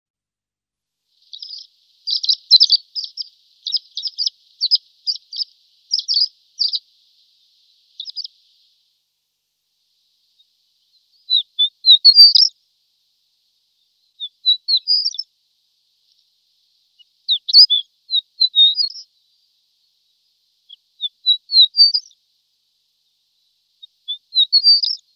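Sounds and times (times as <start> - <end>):
horned lark high chirps: 1.2 - 8.8, 10.1 - 12.6, 14.1 - 15.3, 16.9 - 19.1, 20.6 - 22.2, 23.8 - 25.1.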